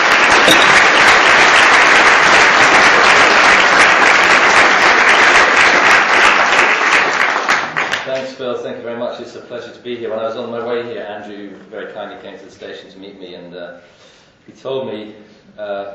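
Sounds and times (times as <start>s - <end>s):
audience applause in Glasgow welcoming a professor: 0.0s - 8.2s
speech: 0.5s - 0.8s, 8.6s - 15.9s.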